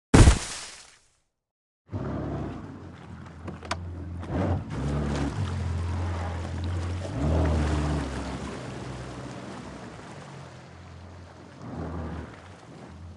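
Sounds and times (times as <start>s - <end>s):
loud water splash: 0.1s - 1.1s, 4.7s - 13.1s
low rumbling churning water: 1.9s - 13.1s.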